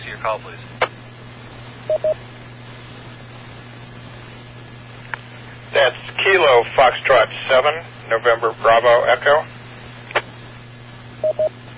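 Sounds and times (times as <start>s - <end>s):
radio hiss and hum: 0.0s - 11.7s
speech: 0.2s - 0.8s, 1.9s - 2.3s, 5.7s - 9.6s
DTMF touch-tone beeps sent over a radio transmitter: 11.2s - 11.5s.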